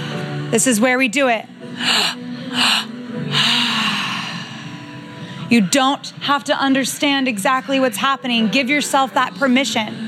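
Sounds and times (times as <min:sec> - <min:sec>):
speech: 0:00.5 - 0:03.5, 0:05.5 - 0:10.0
deep breaths drawn into the belly during a breathing exercise: 0:01.7 - 0:05.5.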